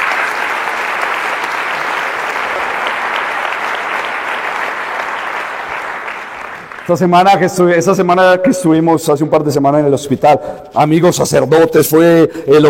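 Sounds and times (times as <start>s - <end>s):
audience applause: 0.0s - 7.1s
speech: 6.9s - 12.6s.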